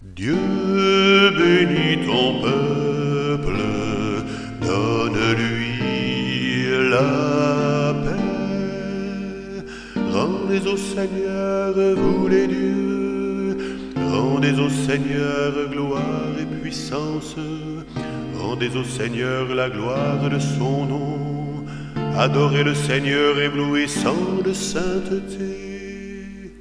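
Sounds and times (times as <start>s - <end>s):
psalm singing: 0.0s - 26.6s.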